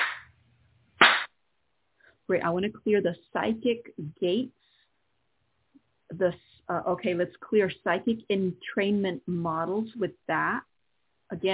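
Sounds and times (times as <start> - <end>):
hand clap: 0.0 - 0.3, 1.0 - 1.3
speech: 2.3 - 4.6, 6.1 - 10.7, 11.3 - 11.5.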